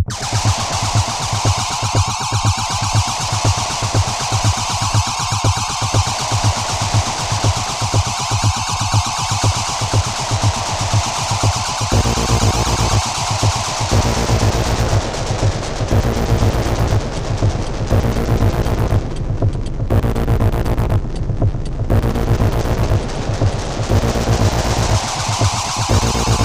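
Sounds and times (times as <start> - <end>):
work noise: 0.1 - 26.4.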